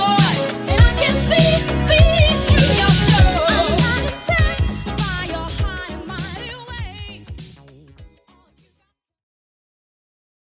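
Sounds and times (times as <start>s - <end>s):
80s Redrum drum machine beat at 100 bpm: 0.0s - 8.2s.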